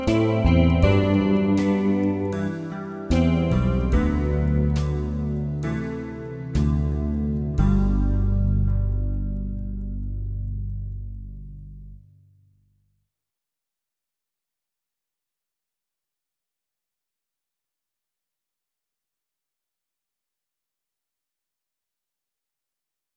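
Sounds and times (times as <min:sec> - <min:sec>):
backing track: 0:00.0 - 0:11.4.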